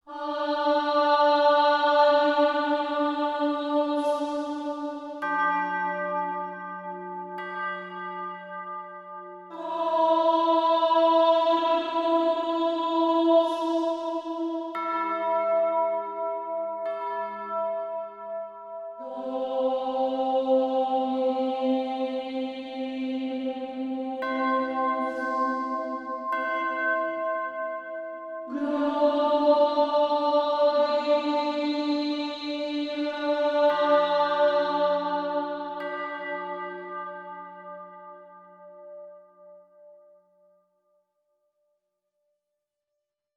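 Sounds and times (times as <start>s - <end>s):
woman singing sacred chant: 0.0s - 5.2s, 9.5s - 15.7s, 19.0s - 26.7s, 28.5s - 36.9s
bells: 0.0s - 40.7s.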